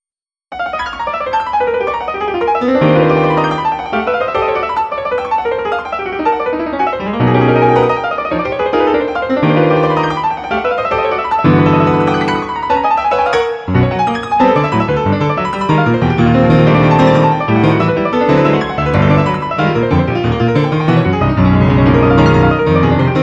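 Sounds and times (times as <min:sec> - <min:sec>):
etude piece in mono: 0:00.5 - 0:23.2.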